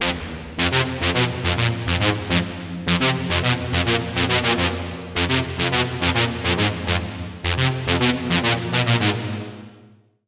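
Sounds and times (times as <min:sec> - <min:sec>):
lead melody: 0:00.0 - 0:09.8.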